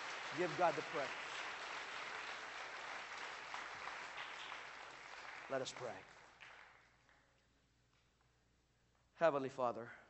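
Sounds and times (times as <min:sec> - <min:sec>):
audience clapping hands in praise: 0:00.0 - 0:07.4
speech: 0:00.3 - 0:01.3, 0:05.5 - 0:06.1, 0:09.2 - 0:10.0.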